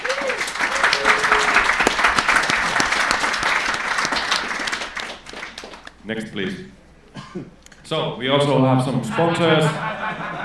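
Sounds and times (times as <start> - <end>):
audience applause: 0.0 - 5.9
speech: 6.1 - 10.4
laughter: 9.0 - 10.4.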